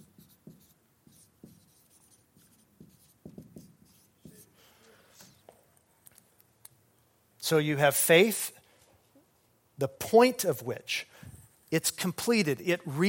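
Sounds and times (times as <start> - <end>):
handwriting strokes with pen or marker: 0.0 - 4.5
speech: 7.5 - 8.6, 9.8 - 11.1, 11.7 - 13.0.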